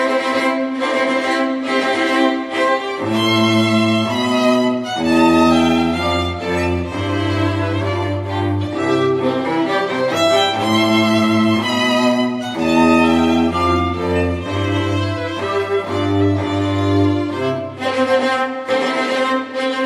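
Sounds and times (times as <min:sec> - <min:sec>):
wedding march music: 0:00.2 - 0:19.8.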